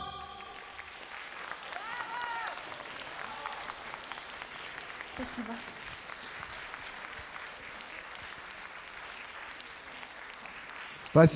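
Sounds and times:
audience applause: 0.0 - 11.3
speech: 5.2 - 6.0, 11.1 - 11.3.

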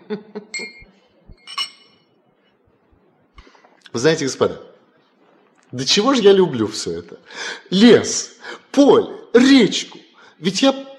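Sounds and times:
speech: 0.1 - 0.8, 3.9 - 4.7, 5.7 - 10.8
glasses clinking during a drinking toast: 0.6 - 2.1.

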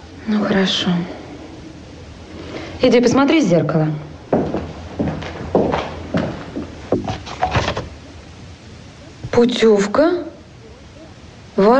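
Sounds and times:
speech: 0.3 - 1.2, 2.8 - 4.6, 9.4 - 10.3, 11.6 - 11.7
man's footsteps in a dramatized story: 4.1 - 8.1.

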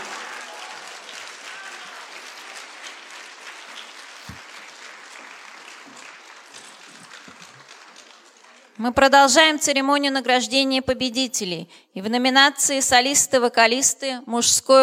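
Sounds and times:
audience applause at an awards ceremony: 0.0 - 8.9
speech: 8.8 - 14.8.

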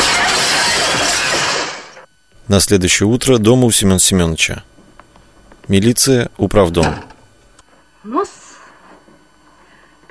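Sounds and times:
chair smashing through a glass window: 0.0 - 1.8
speech: 2.5 - 4.7, 5.7 - 7.1, 8.0 - 8.4.

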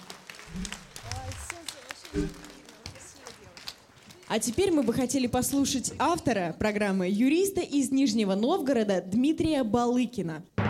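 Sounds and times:
audience applause: 0.0 - 5.5
speech: 2.1 - 2.5, 4.3 - 10.5.

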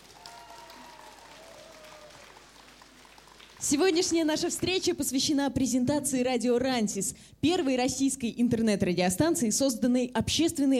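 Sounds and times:
audience applause: 0.0 - 4.8
speech: 3.6 - 10.7.

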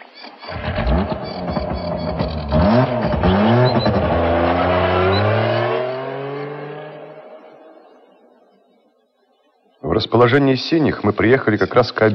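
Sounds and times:
motorcycle engine revving: 0.5 - 8.5
speech: 10.0 - 12.1.

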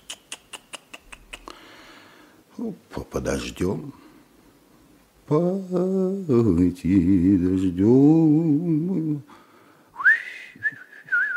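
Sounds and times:
speech: 2.6 - 4.0, 5.3 - 9.4
person whistling softly: 10.0 - 11.3.

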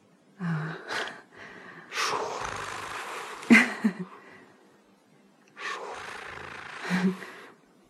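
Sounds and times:
person breathing heavily: 0.4 - 4.6, 5.6 - 7.6.

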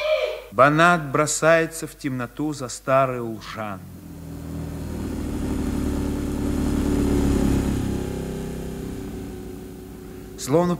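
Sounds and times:
speech: 0.6 - 4.0, 10.4 - 10.7
car engine driving away: 3.4 - 10.7.

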